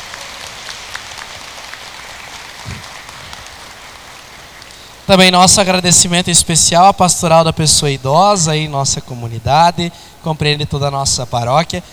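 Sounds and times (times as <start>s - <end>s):
applause for grandparents and elderly people: 0.0s - 5.2s
speech: 5.1s - 11.9s.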